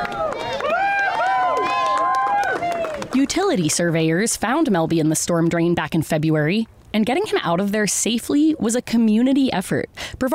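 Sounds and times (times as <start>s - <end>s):
crowd applauding and cheering: 0.0s - 3.3s
speech: 3.2s - 10.3s.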